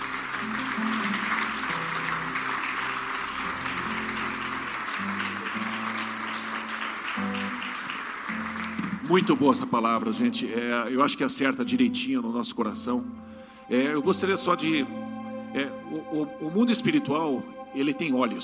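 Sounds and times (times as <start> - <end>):
audience applauding: 0.0 - 9.8
speech: 9.1 - 18.4.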